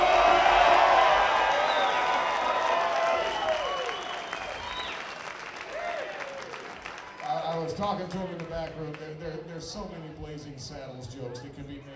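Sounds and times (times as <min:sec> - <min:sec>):
scattered cheers and whoops: 0:00.0 - 0:07.4
crowd applause: 0:00.0 - 0:08.8
speech: 0:07.8 - 0:11.9.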